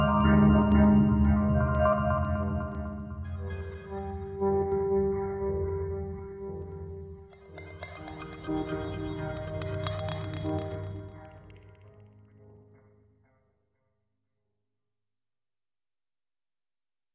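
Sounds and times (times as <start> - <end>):
Db harmonic minor music at 60 BPM: 0.0 - 13.3.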